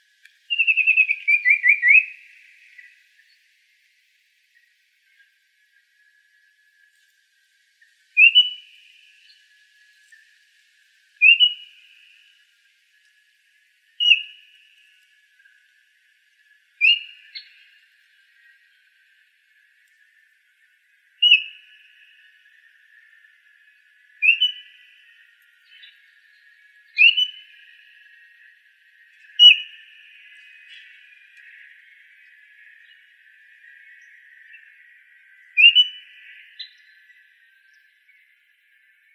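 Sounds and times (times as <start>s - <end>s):
icterid bird calls: 0.5s - 3.0s, 8.2s - 8.8s, 11.2s - 12.1s, 14.0s - 14.6s, 16.8s - 17.7s, 21.2s - 37.8s.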